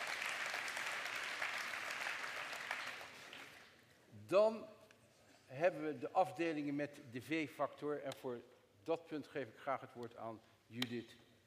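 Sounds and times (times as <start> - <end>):
audience applause at a VVD party congress: 0.0 - 3.7
speech: 4.3 - 4.8, 5.5 - 11.4.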